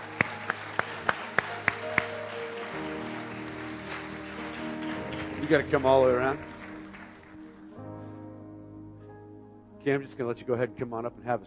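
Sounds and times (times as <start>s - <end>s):
church congregation hand claps: 0.0s - 7.4s
speech: 5.4s - 6.5s, 9.8s - 11.4s.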